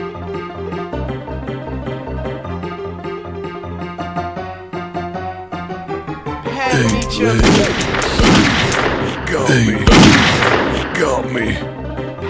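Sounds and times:
video game musical backing: 0.0 - 12.2
video game gunfire during an ambush: 6.7 - 11.6
speech: 6.8 - 8.0, 9.3 - 11.7.

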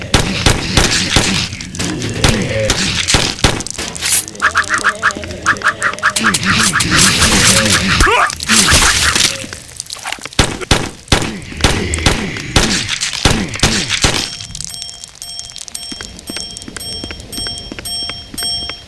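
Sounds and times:
zombie game weapon sounds: 0.1 - 14.5.

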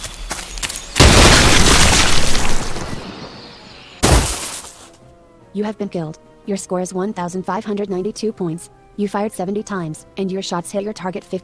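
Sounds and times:
landmine explosion in a video game: 1.0 - 4.7
speech: 5.5 - 11.4.

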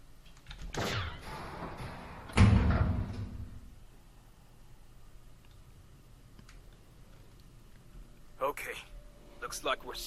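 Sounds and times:
door opened with heavy impacts: 1.2 - 3.6
speech: 8.6 - 10.0.

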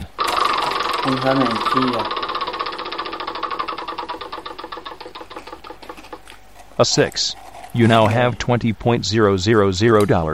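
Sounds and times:
prize wheel spinning in a video board game: 0.1 - 6.4
speech: 1.0 - 2.2, 6.8 - 10.3.

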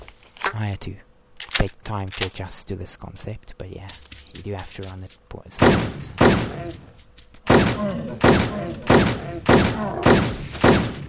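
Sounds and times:
speech: 0.6 - 7.2, 7.8 - 11.0
heavy gunshots in a zombie video game: 5.6 - 6.8, 7.5 - 11.0.

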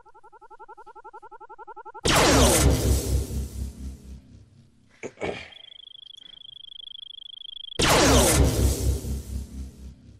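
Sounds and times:
Space Invaders-style arcade shooter blasts: 2.0 - 4.6, 7.8 - 10.1.

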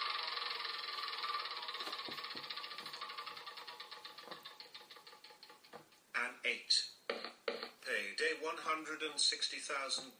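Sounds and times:
board game spinner wheel ticking: 0.0 - 6.2
speech: 6.5 - 6.9, 8.2 - 10.1.

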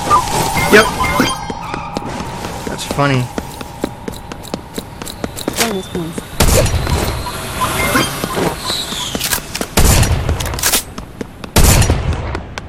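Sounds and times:
steady noise: 0.0 - 12.6
speech: 0.7 - 1.0, 3.0 - 3.4, 5.7 - 6.2
video game gunfire: 6.4 - 7.1, 9.2 - 10.9, 11.6 - 12.3.

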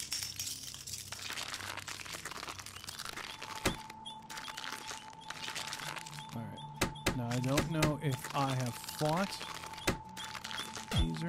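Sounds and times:
broken glass crunching: 0.0 - 6.3, 7.2 - 11.1
speech: 7.4 - 9.6, 11.0 - 11.2.

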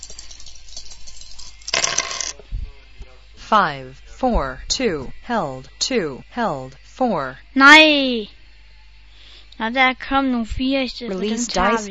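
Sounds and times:
dice rolling in a video game: 1.7 - 2.3
speech: 3.5 - 8.4, 9.6 - 11.8.

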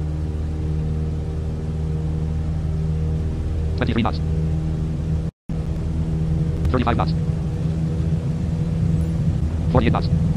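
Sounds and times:
aircraft engine humming as takeoff begins: 0.0 - 10.3
speech: 3.8 - 4.4, 6.7 - 7.3, 9.7 - 10.3.

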